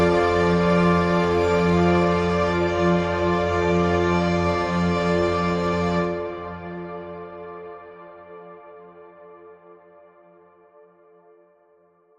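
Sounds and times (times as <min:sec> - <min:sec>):
string chords: 0:00.0 - 0:08.4.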